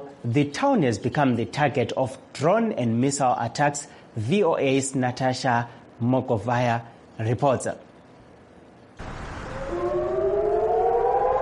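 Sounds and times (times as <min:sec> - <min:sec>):
speech: 0:00.2 - 0:07.9
civil defense air raid siren: 0:09.0 - 0:11.4.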